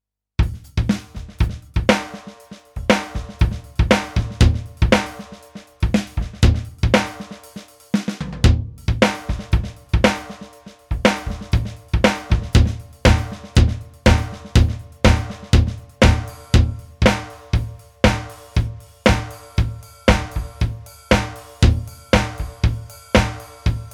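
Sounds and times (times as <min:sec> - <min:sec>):
groove music: 0:01.0 - 0:08.2, 0:08.9 - 0:23.9.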